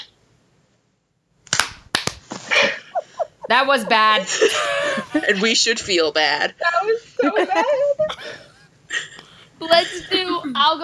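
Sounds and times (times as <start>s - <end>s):
group clapping hands in unison: 1.5s - 5.0s
laughter: 2.4s - 5.8s, 7.2s - 10.4s
speech: 3.5s - 9.0s, 9.6s - 10.8s.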